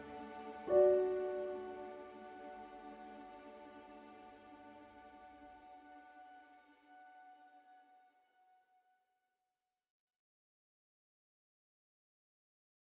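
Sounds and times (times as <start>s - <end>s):
emotional music: 0.0s - 8.1s.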